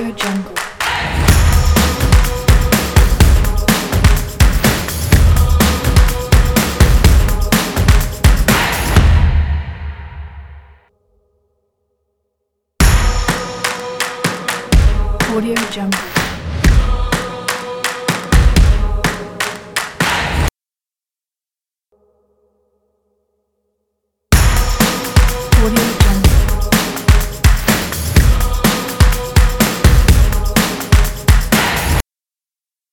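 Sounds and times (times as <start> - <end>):
drums: 0.8 - 10.7, 12.8 - 20.5, 24.3 - 32.0.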